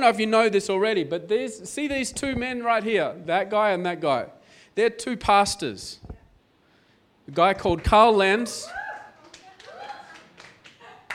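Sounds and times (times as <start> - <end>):
speech: 0.0 - 6.1, 7.3 - 8.8
audience clapping: 7.3 - 11.1.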